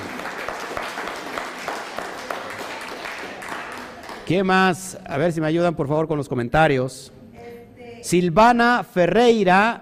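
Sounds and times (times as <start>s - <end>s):
crowd applauding: 0.0s - 4.4s
speech: 4.3s - 7.2s, 8.0s - 9.8s.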